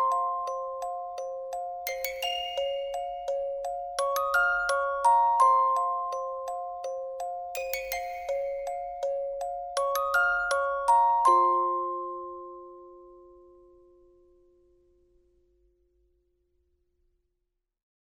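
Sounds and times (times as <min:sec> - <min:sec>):
music box: 0:00.0 - 0:14.2.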